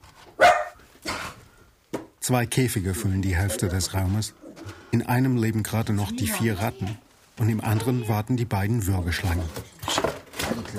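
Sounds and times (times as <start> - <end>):
terrier barking: 0.4 - 0.8
speech: 2.3 - 10.0.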